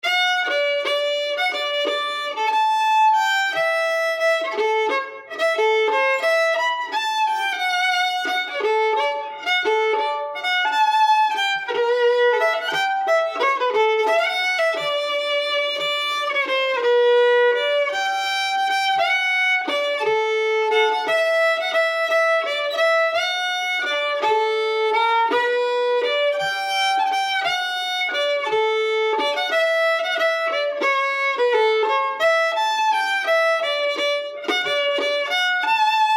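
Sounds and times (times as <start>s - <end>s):
fiddles playing a swing waltz: 0.0s - 36.1s.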